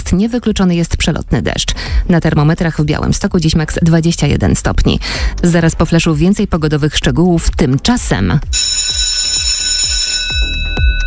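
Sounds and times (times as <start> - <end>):
speech: 0.1 - 9.1
electric school bell ringing: 8.5 - 11.0.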